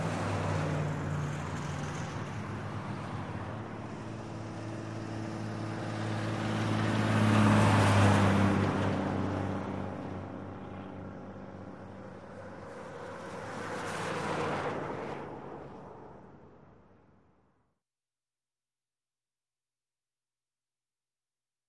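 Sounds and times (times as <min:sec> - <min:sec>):
busy highway traffic with cars and trucks: 0:00.0 - 0:17.3.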